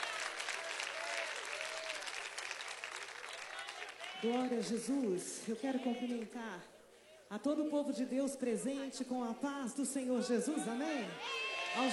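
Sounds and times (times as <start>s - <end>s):
audience applause: 0.0s - 4.5s
speech: 4.2s - 11.9s.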